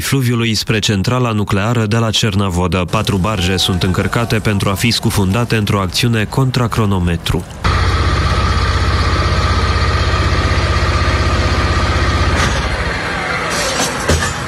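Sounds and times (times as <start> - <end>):
speech: 0.0 - 7.8
heavy diesel engines of excavators idling: 2.9 - 14.4
sharp metallic clanks: 13.5 - 14.4.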